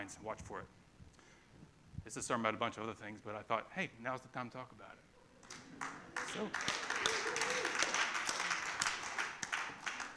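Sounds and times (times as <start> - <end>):
speech: 0.0 - 0.8, 2.0 - 7.5
congregation applauding during a church sermon: 5.4 - 10.1.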